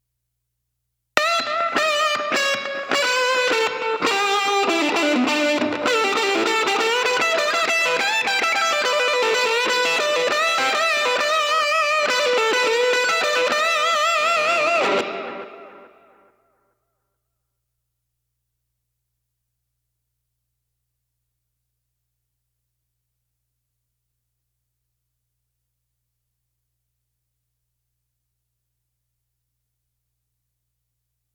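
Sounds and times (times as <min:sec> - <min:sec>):
lead guitar: 0:01.2 - 0:16.3.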